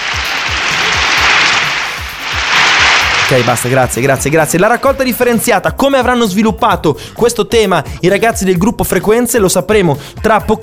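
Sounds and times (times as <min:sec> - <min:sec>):
fake applause: 0:00.0 - 0:04.0
speech: 0:03.3 - 0:10.6.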